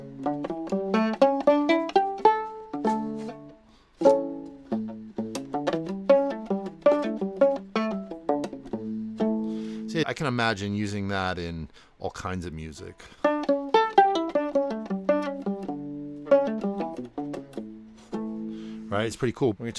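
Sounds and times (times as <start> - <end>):
octave fiddle playing scale-like phrases: 0.0 - 10.0, 12.6 - 19.1
speech: 0.2 - 0.5, 10.1 - 13.2, 19.0 - 19.7.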